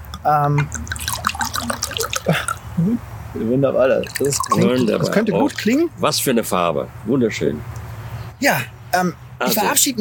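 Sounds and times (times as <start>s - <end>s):
speech: 0.2s - 0.9s, 1.6s - 7.8s, 8.4s - 10.0s
wine being poured: 0.6s - 2.6s, 3.9s - 5.8s.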